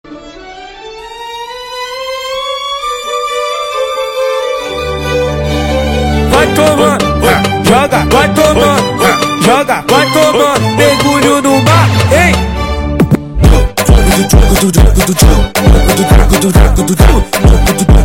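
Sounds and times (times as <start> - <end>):
phonk funk music: 4.4 - 18.0.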